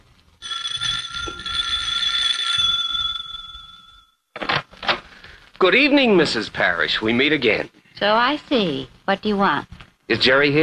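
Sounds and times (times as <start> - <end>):
doorbell ringing: 0.4 - 4.2
speech: 5.6 - 10.6.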